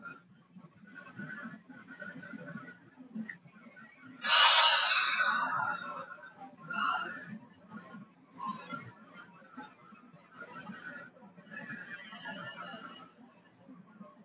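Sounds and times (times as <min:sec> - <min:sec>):
long deep breath drawn in through the nose: 0:04.2 - 0:06.3.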